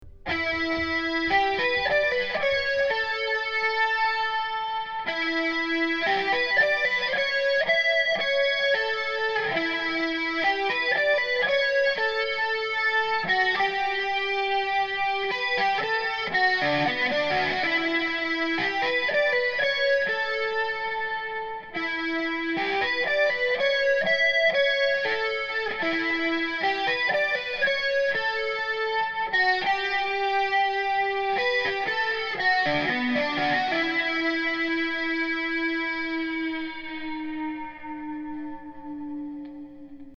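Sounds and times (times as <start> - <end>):
guitar: 0.0 - 40.1.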